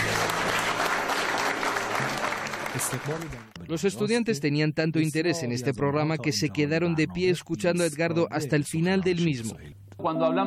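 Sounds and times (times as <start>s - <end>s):
audience applause: 0.0s - 3.5s
speech: 2.8s - 10.4s.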